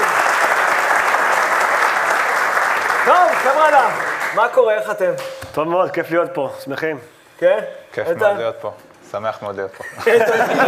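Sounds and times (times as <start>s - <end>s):
audience applause: 0.0s - 4.6s
speech: 3.1s - 10.6s
laughter: 9.8s - 10.6s.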